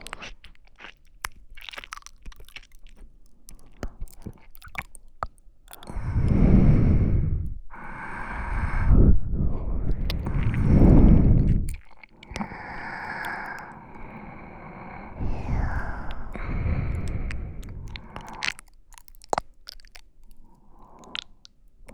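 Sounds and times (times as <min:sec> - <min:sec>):
wet squishing sounds: 0:00.0 - 0:06.4, 0:07.7 - 0:21.9
sleeping breath in both ears: 0:05.7 - 0:18.6.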